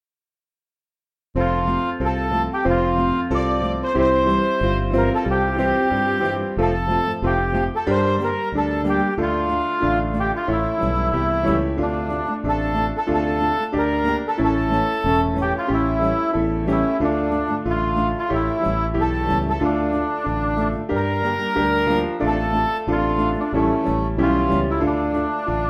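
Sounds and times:
MIDI music: 1.4s - 25.6s.

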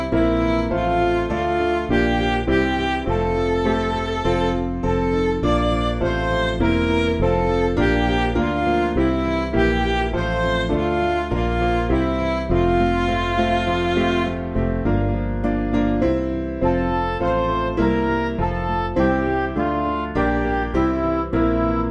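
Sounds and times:
midi music: 0.0s - 21.9s.

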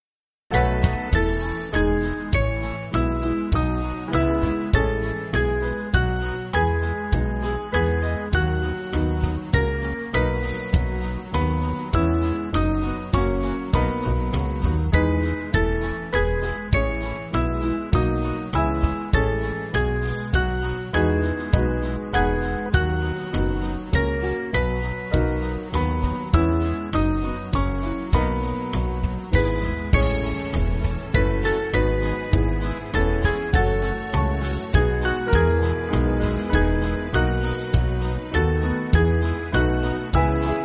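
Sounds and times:
band backing music: 0.5s - 40.6s.

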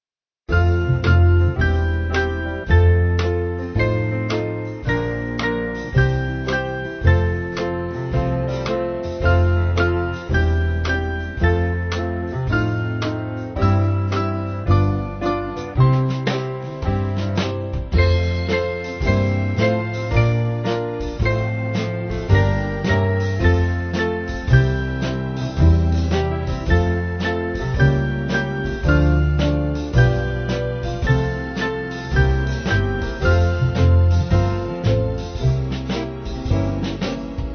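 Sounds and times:
church band backing music: 0.6s - 37.5s.

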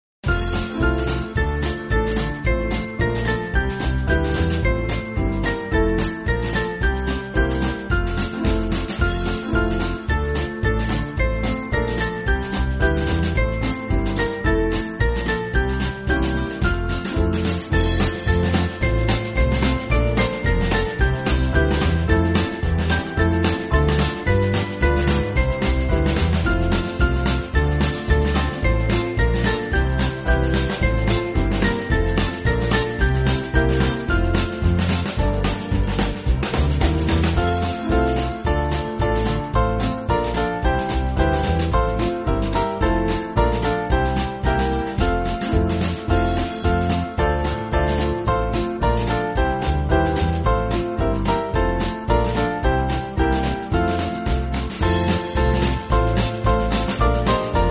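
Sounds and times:
band playing: 0.2s - 57.6s.

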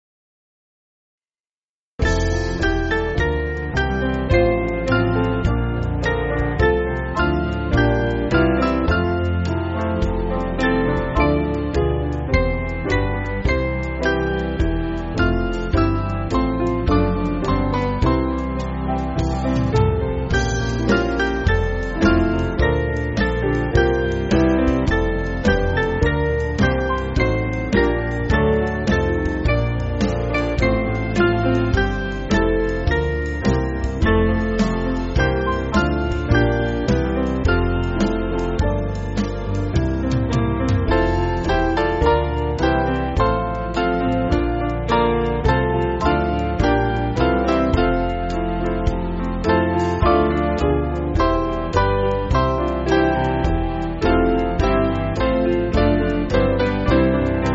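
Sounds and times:
band backing track for churches: 2.0s - 57.5s.

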